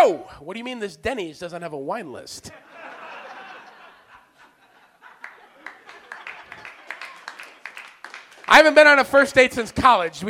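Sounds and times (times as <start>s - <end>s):
speech: 0.0s - 2.7s, 8.5s - 10.2s
laughter: 2.5s - 7.8s
single audience member clapping: 5.2s - 8.6s.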